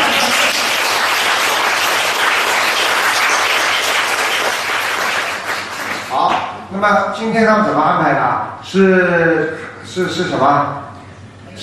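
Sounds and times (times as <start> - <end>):
audience applause: 0.0 - 6.2
speech: 6.8 - 10.8.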